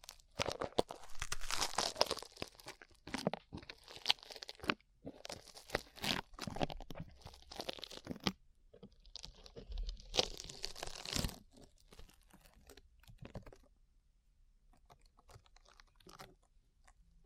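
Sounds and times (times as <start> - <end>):
sticky slime squished and pulled: 0.0 - 13.6.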